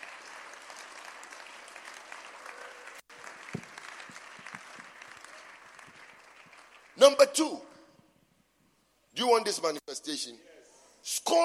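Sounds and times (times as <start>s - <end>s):
audience clapping: 0.0s - 7.4s
speech: 7.0s - 7.7s, 9.2s - 11.4s.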